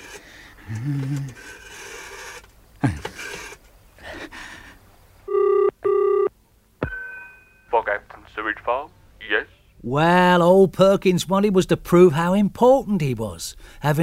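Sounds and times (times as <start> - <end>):
speech: 0.7 - 1.6, 8.7 - 9.0, 9.8 - 14.0
telephone ringing tone: 5.3 - 6.3.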